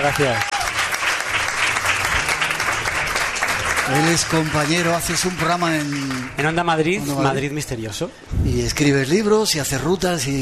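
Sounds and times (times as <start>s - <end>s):
speech: 0.0s - 0.5s, 3.9s - 10.4s
applause: 0.0s - 6.7s.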